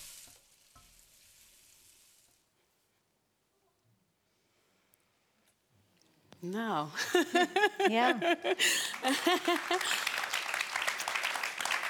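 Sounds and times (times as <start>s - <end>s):
speech: 6.4s - 10.1s
laughter: 7.0s - 10.4s
audience applause: 8.6s - 11.8s.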